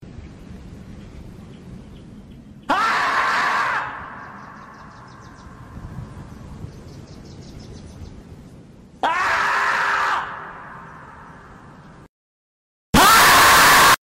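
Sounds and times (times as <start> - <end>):
beaver screaming: 2.7 - 4.4, 9.0 - 10.7, 13.0 - 14.0.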